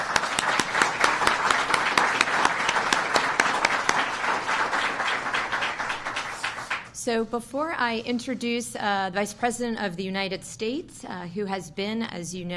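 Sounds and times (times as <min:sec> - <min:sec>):
crowd applause: 0:00.0 - 0:06.9
speech: 0:07.1 - 0:12.5.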